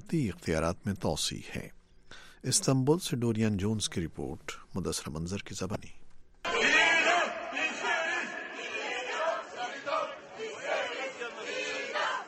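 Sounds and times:
speech: 0.1 - 6.0
protesters in Istanbul chanting in unison for the death penalty: 6.5 - 12.2.

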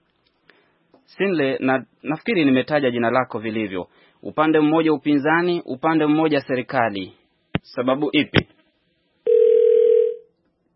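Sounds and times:
speech: 1.1 - 8.5
telephone tone after a phone-in caller's dropped line: 9.3 - 10.3.

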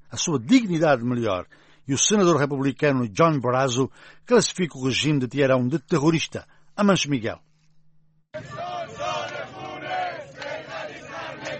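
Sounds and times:
speech: 0.1 - 7.5
protesters shouting slogans in the street in Tehran: 8.4 - 11.5.

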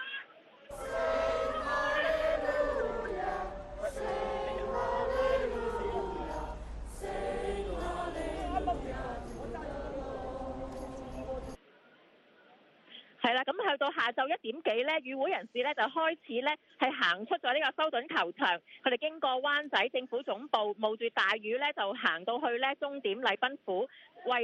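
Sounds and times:
crowd singing hymns at a prayer rally in Southorn Stadium, Hong Kong: 0.7 - 11.6
speech: 13.9 - 24.4.

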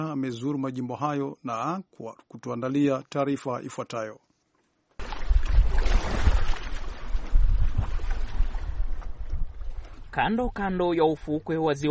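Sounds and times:
speech: 0.0 - 4.3, 10.1 - 11.8
wind blowing off Lake Victoria along the shore at Dunga, Kisumu: 5.0 - 11.8.

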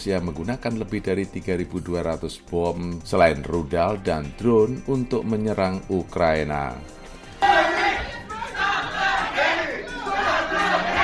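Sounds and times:
speech: 0.0 - 7.6
group of activists shouting loudly together in a senate chamber: 7.4 - 11.0.

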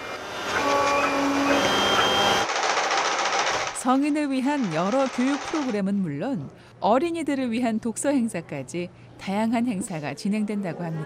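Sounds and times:
3D printer stepper motors whining: 0.0 - 2.5
3D printer mechanical hum: 0.0 - 11.0
speech: 3.8 - 11.0.

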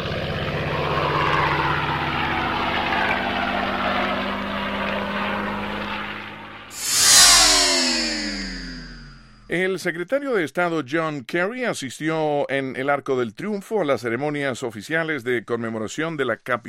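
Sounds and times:
World War II propeller aircraft flyover: 0.0 - 9.4
speech: 9.5 - 16.6.

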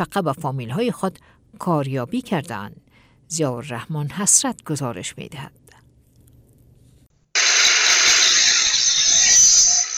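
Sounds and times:
speech: 0.0 - 5.7
noise of active workshops in Nangarhar public prison: 7.4 - 9.9.

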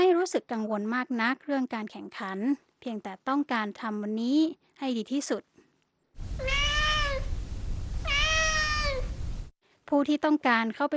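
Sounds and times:
speech: 0.2 - 5.5, 9.9 - 10.9
low rumble: 6.2 - 9.5
cat meowing: 6.4 - 7.3, 8.0 - 9.2.

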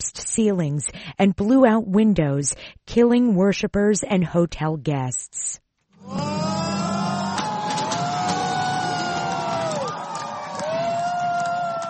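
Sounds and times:
speech: 0.4 - 6.4
supporters of Volodymyr Zelensky cheering at Ukrainian exit polls: 6.0 - 11.8.

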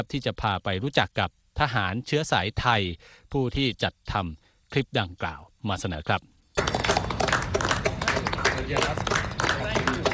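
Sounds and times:
speech: 0.0 - 6.7, 8.6 - 9.3
clapping by uniformed soldiers: 6.6 - 10.1.

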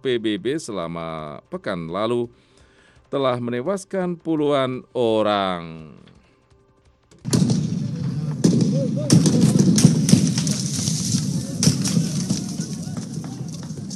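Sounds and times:
speech: 0.0 - 2.5, 3.1 - 6.2
gunfire outside Sudan military headquarters in Khartoum: 7.2 - 13.9.

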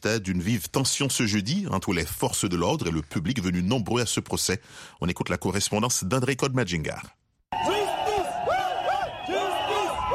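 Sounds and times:
speech: 0.0 - 7.6
protesters shouting outside the trial of civil society leaders in Chad: 7.5 - 10.1.

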